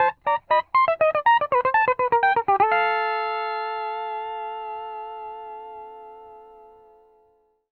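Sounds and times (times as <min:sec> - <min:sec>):
country music loop at 120 BPM: 0:00.0 - 0:04.8.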